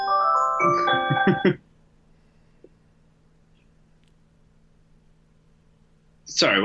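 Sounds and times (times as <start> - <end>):
phone ringtone electronic melody: 0.0 - 1.6.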